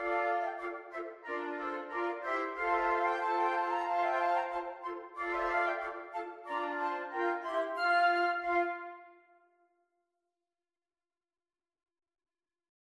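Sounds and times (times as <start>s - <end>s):
flute quartet playing a jig: 0.0s - 9.1s.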